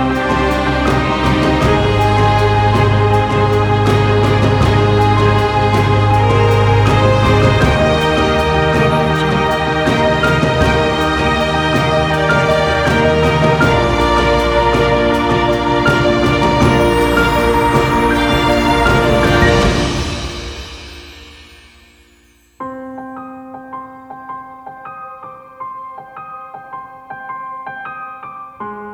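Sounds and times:
epic inspiring emotional cinematic music: 0:00.0 - 0:22.7.

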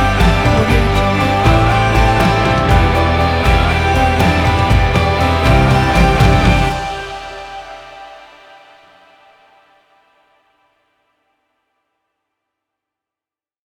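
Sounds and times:
uplifting and inspiring indie folk music: 0:00.0 - 0:08.2.

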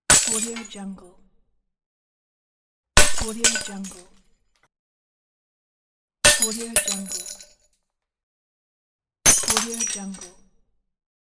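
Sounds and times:
glass bottle breaking: 0:00.1 - 0:00.7, 0:03.0 - 0:04.0, 0:06.3 - 0:07.5, 0:09.3 - 0:10.3.

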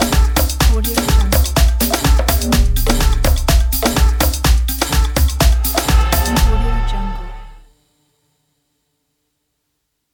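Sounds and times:
African dance percussion: 0:00.0 - 0:07.7.

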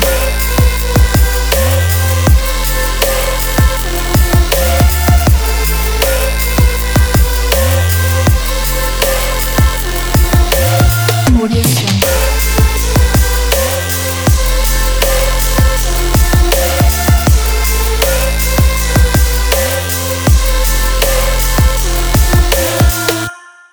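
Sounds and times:
future vocal dubstep music: 0:00.0 - 0:23.5.

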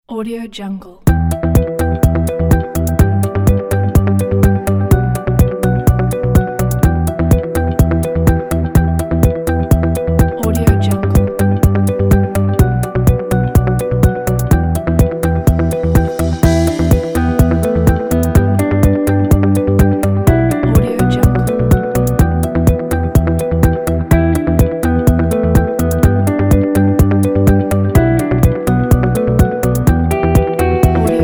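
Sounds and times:
corporate presentation background music: 0:01.1 - 0:31.2.

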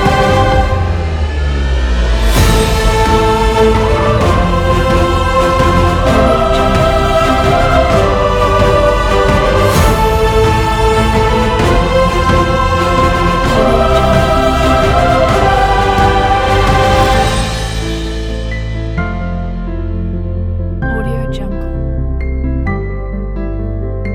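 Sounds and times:
epic motivational hopeful cinematic music: 0:00.0 - 0:24.0.

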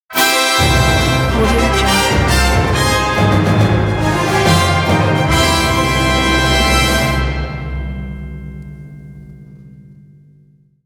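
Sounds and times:
animation orchestral intro ident: 0:00.1 - 0:08.4.

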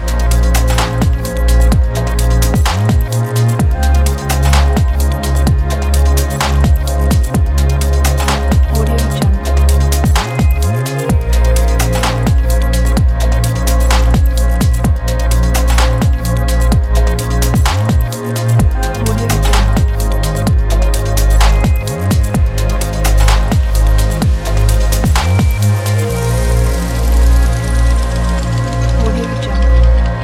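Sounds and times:
futuristic ambient soundscape: 0:00.0 - 0:30.2.

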